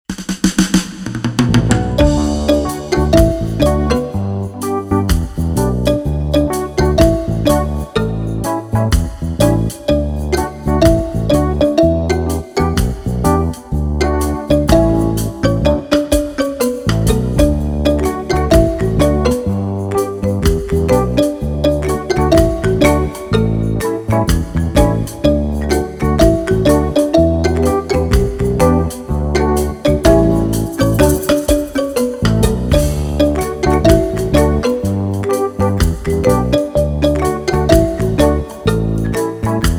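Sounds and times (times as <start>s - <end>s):
instrumental melody track: 1.3s - 39.7s.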